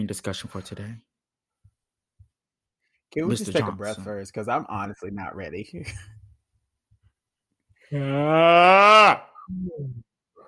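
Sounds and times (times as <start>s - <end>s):
speech: 0.0s - 1.1s, 3.1s - 6.2s, 7.9s - 10.1s
yawn like a whale sound: 7.9s - 10.0s.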